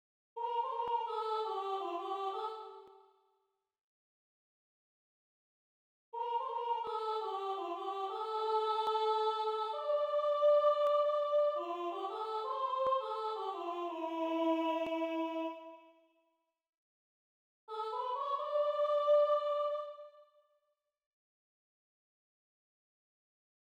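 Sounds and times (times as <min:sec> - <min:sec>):
alto singing a chorale: 0:00.4 - 0:02.9, 0:06.2 - 0:15.8, 0:17.7 - 0:20.2.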